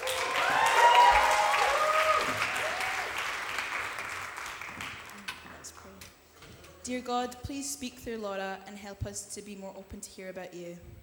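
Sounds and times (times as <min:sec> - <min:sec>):
audience cheering: 0:00.0 - 0:04.8
applause: 0:00.0 - 0:05.4
speech: 0:06.9 - 0:11.0.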